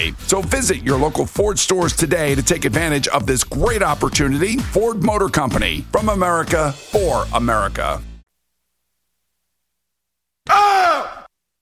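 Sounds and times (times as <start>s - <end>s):
speech: 0.0s - 8.1s
raspy mummy scream sound effect: 10.5s - 11.3s.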